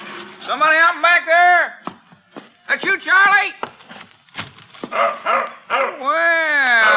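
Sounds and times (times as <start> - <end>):
speech: 0.4 - 1.8, 2.7 - 3.7, 4.9 - 6.9
dog barking outside back door: 4.9 - 6.0, 6.8 - 6.9.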